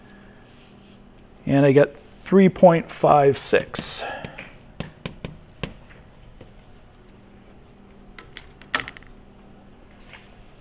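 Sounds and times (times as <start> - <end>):
speech: 1.5 - 4.2
calculator keys being pressed: 3.5 - 6.6.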